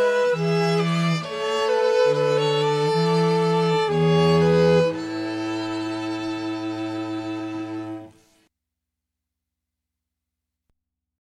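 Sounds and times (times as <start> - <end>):
cello: 0.0 - 8.4
flute: 0.0 - 8.4
violin: 0.0 - 8.4.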